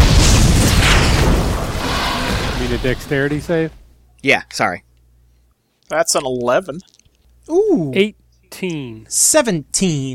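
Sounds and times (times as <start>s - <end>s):
metallic roar: 0.2s - 3.1s
speech: 2.9s - 4.8s, 5.9s - 10.1s.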